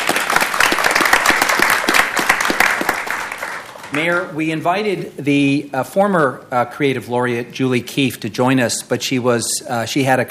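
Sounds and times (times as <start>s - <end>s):
audience applause: 0.0s - 4.2s
speech: 3.9s - 10.2s.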